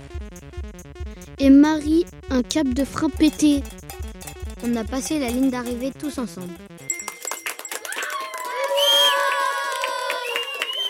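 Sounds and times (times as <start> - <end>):
speech: 1.4 - 3.8, 4.6 - 6.7
crowd of spectators clapping and cheering: 6.5 - 10.8.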